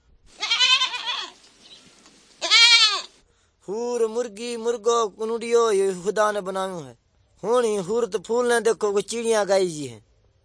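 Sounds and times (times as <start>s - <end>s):
goat bleating: 0.4s - 1.4s, 2.4s - 3.2s
speech: 3.7s - 10.1s.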